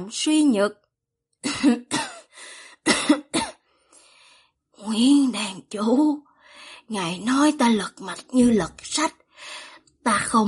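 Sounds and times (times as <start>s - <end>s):
speech: 0.0s - 0.8s, 1.6s - 2.0s, 4.8s - 6.3s, 6.9s - 10.4s
soft coughs: 1.4s - 3.7s.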